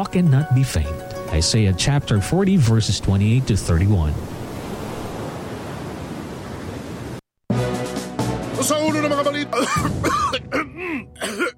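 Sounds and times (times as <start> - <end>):
speech: 0.0 - 4.3, 8.6 - 11.2
dry hacking coughs: 9.5 - 11.5.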